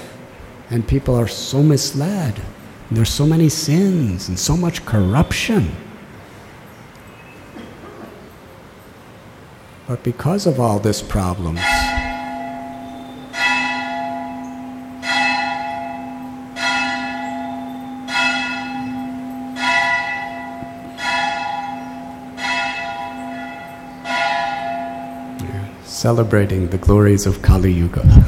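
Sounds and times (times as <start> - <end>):
speech: 0.7 - 5.9, 9.9 - 11.8, 26.0 - 28.2
festival bell ringing: 10.4 - 25.5.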